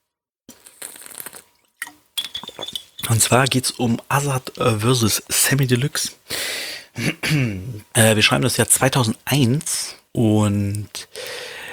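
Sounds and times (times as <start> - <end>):
person taking a small sip of a drink: 0.5 - 4.6
soft glassy clinks: 2.2 - 4.0
speech: 3.1 - 6.3, 7.0 - 11.2.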